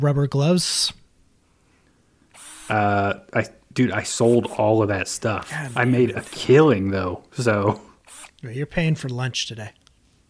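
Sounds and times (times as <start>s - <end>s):
speech: 0.0s - 1.0s, 2.7s - 9.8s
power drill loosening screws on a wall: 2.3s - 2.8s, 4.2s - 4.7s, 5.4s - 6.6s, 8.0s - 8.4s.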